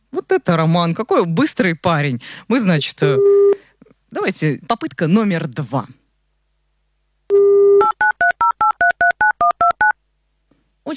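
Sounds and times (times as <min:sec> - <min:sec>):
speech: 0:00.4 - 0:03.4, 0:04.1 - 0:06.0
telephone dialing tones: 0:07.3 - 0:10.0.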